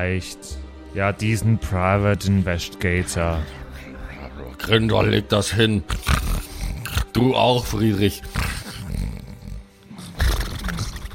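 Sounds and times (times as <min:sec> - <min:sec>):
speech: 0:00.0 - 0:03.9, 0:04.6 - 0:06.2, 0:07.1 - 0:08.4
person snoring: 0:05.9 - 0:11.1.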